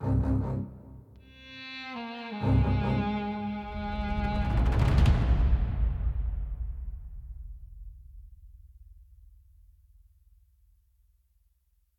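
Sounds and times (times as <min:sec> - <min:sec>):
desperate escape action music: 0:02.1 - 0:08.7.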